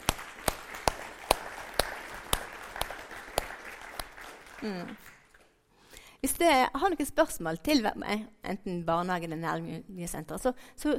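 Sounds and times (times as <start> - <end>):
audience applause: 0.0 - 5.6
speech: 4.6 - 5.2, 6.2 - 10.9.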